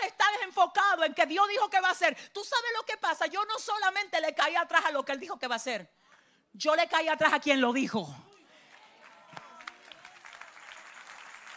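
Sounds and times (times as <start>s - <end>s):
speech: 0.6s - 6.0s, 6.6s - 8.3s
audience applause: 8.6s - 11.5s.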